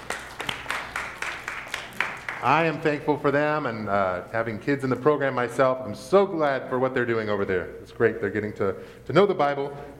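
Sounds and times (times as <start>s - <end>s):
audience applause: 0.0s - 2.8s
speech: 2.4s - 9.9s.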